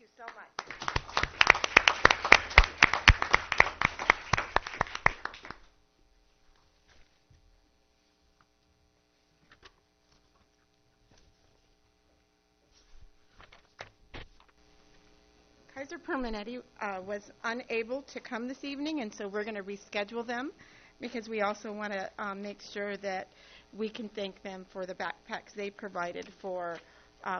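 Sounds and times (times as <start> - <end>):
audience applause: 0.6 - 5.7
speech: 15.9 - 27.3.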